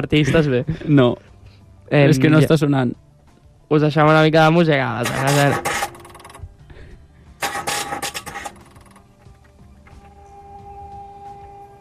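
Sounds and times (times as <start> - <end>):
speech: 0.0 - 1.3, 1.9 - 3.0, 3.7 - 5.8
engine cranking but failing to start: 5.0 - 6.5, 7.4 - 9.2.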